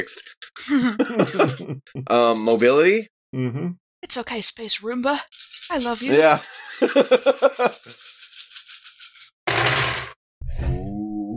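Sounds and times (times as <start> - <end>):
speech: 0.0 - 8.1
laughter: 0.6 - 2.5, 6.0 - 7.9
many dice tumbling together: 2.2 - 2.6, 5.2 - 10.1.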